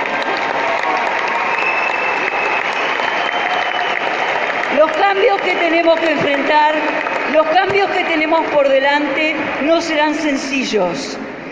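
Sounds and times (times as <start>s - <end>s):
audience applause: 0.0s - 8.8s
speech: 5.2s - 11.2s.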